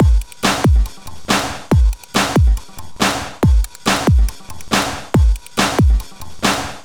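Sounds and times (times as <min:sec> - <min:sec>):
eclectic electronica drum beat: 0:00.0 - 0:06.8.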